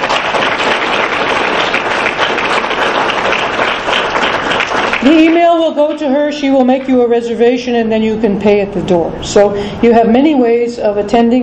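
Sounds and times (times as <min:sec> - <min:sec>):
audience applause: 0:00.0 - 0:06.0
speech: 0:05.0 - 0:11.4.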